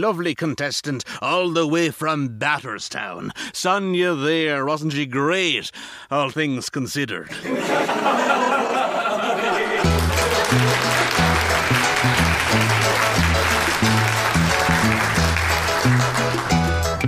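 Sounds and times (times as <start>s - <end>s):
speech: 0.0s - 8.8s
laughter: 7.3s - 15.6s
big round of applause: 9.8s - 17.0s.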